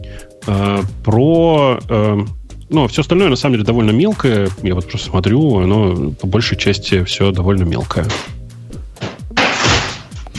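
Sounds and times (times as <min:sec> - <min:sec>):
speech: 0:00.2 - 0:08.4
book falling: 0:09.0 - 0:10.3.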